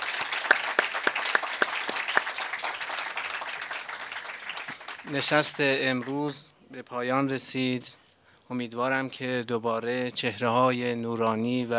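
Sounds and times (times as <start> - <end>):
audience applause for a young tanbur player: 0.0 - 6.4
speech: 5.1 - 11.7.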